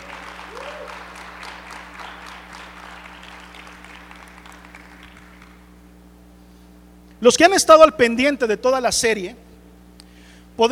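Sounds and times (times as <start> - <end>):
audience applauding: 0.0 - 5.7
speech: 7.2 - 9.4.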